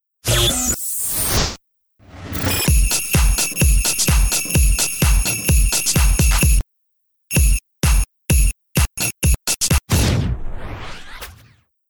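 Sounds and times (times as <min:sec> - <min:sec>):
rhythmic bass: 0:02.4 - 0:06.6, 0:07.3 - 0:09.9.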